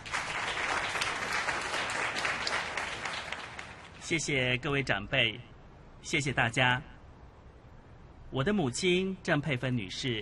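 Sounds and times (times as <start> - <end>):
crowd applause welcoming a speaker: 0.0 - 4.0
speech: 4.1 - 6.9, 8.3 - 10.2.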